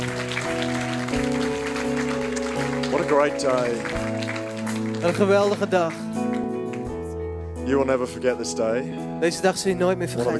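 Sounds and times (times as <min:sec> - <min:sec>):
audience applauding: 0:00.0 - 0:07.0
speech: 0:03.0 - 0:04.4, 0:05.0 - 0:06.2, 0:07.7 - 0:10.3.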